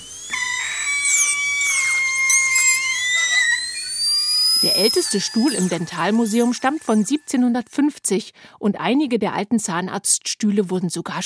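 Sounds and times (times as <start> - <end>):
high-pitched dental drill whining: 0.0 - 7.6
speech: 4.7 - 11.2.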